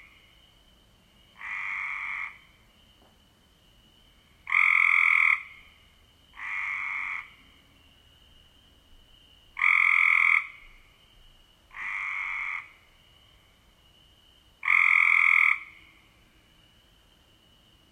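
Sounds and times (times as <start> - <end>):
Cope's gray treefrog giving buzzy trills: 1.2 - 2.6, 3.9 - 13.5, 14.6 - 16.2.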